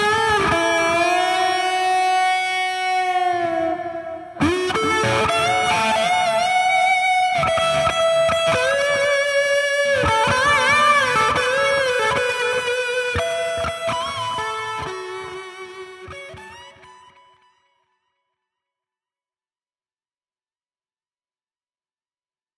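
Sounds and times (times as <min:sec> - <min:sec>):
guitar solo through Sunface fuzz pedal at 12 o'clock with gain at 50%: 0:00.0 - 0:17.5.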